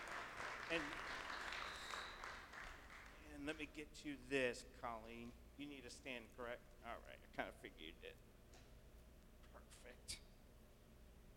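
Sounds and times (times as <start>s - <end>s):
audience applauding to welcome a speaker: 0.0s - 3.2s
speech: 0.7s - 1.1s, 3.4s - 8.3s, 9.6s - 10.2s.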